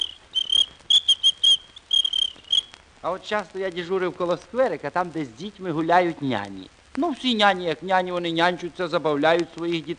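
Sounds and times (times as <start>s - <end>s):
small lady's whistle blown by a traffic officer: 0.0s - 2.7s
speech: 3.0s - 9.9s.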